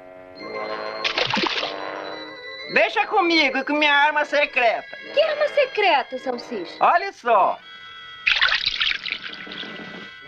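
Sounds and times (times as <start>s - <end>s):
sustained ringing tones: 0.4s - 10.2s
water splashing as a cartoon character bobs for apples: 1.0s - 1.8s, 8.3s - 9.6s
speech: 2.7s - 7.7s.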